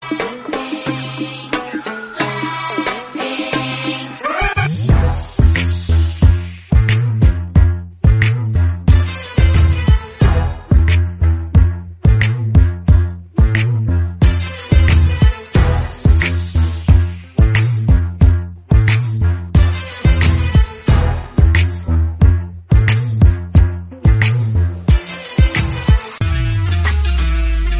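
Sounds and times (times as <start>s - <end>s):
instrumental music: 0.0s - 27.7s.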